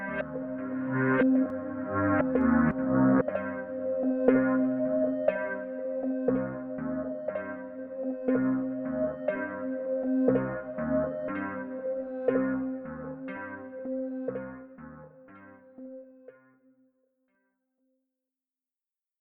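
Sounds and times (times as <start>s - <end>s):
Reaper MIDI music: 0.0s - 13.8s.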